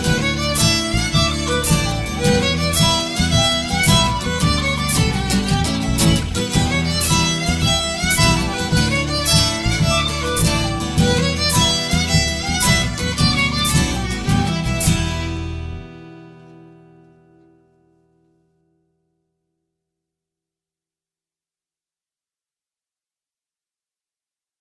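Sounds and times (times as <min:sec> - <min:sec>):
jig tune: 0:00.0 - 0:16.0.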